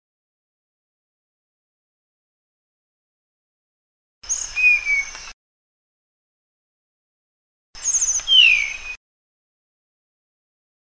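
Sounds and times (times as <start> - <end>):
Sunda blue flycatcher song of thin high whistled notes: 4.3 - 5.4, 7.8 - 9.0.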